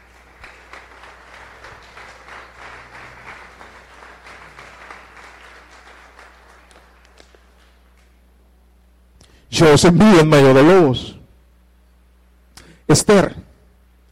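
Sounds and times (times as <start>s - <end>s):
audience applause: 0.0s - 7.8s
speech: 9.6s - 11.2s, 12.9s - 13.4s.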